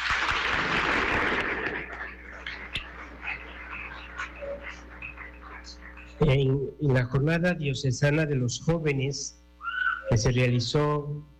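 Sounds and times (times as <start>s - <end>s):
audience applause: 0.0s - 6.2s
low steady hum: 0.1s - 11.3s
speech: 6.2s - 9.4s, 10.1s - 11.3s.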